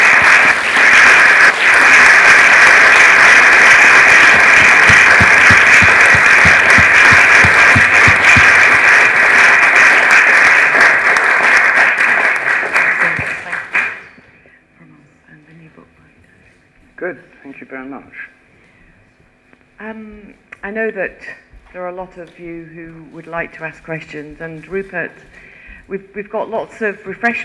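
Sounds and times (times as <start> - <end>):
audience round of applause: 0.0 - 14.1
speech: 17.8 - 18.2, 19.9 - 27.4.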